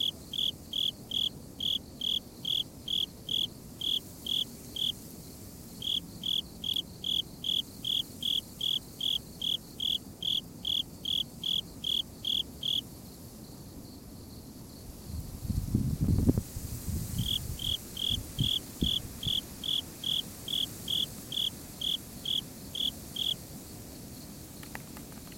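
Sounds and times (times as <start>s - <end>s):
Emma field cricket chirping: 0.0s - 25.3s.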